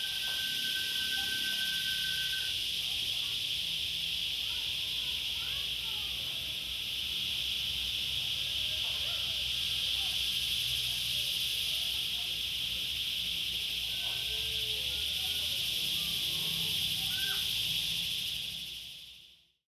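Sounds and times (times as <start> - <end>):
cicadas in a church courtyard in Corrientes: 0.0 - 19.6.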